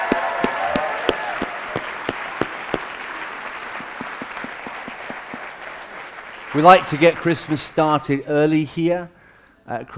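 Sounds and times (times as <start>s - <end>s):
audience applause: 0.0s - 7.7s
speech: 6.6s - 9.9s.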